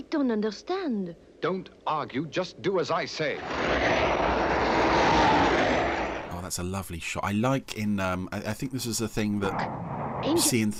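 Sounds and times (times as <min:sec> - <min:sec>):
speech: 0:00.1 - 0:04.3, 0:06.5 - 0:10.7
aircraft flying overhead: 0:03.4 - 0:06.3.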